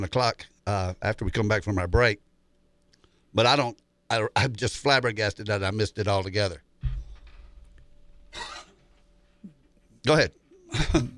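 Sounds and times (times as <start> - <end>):
speech: 0.0 - 2.3, 3.3 - 6.6, 8.3 - 8.6, 10.0 - 11.1
cough: 8.3 - 8.8, 10.7 - 11.1.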